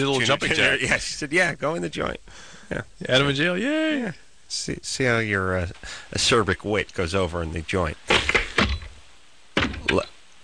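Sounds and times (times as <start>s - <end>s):
speech: 0.0s - 8.3s, 9.9s - 10.1s
jail cell door closing sound effect: 8.1s - 9.0s, 9.6s - 10.1s.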